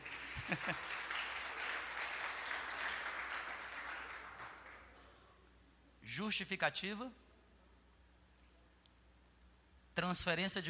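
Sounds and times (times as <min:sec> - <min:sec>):
crowd applause: 0:00.0 - 0:05.0
laughter: 0:00.3 - 0:01.2
speech: 0:00.5 - 0:01.0, 0:06.1 - 0:07.2, 0:10.0 - 0:10.6.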